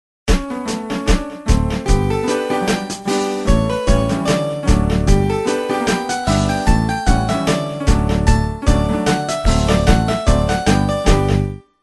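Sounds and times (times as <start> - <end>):
backing track: 0.3 - 11.6.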